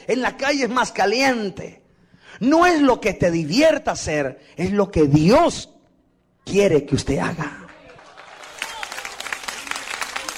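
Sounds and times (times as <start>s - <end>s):
speech: 0.0s - 5.7s, 6.4s - 7.6s
audience applause: 7.6s - 10.3s.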